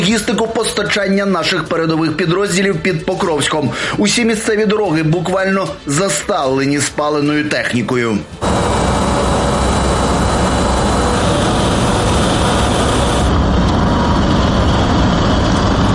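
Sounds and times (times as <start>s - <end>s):
speech: 0.1s - 8.7s
military supply vehicle engine driving fast: 8.4s - 15.9s
road noise: 8.4s - 15.9s.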